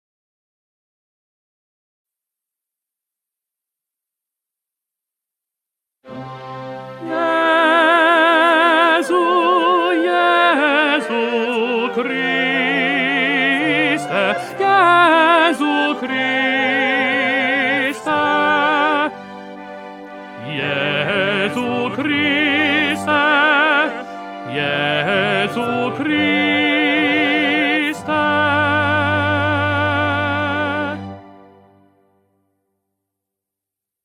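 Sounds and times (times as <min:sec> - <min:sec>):
tenor singing a mass: 0:07.0 - 0:31.4.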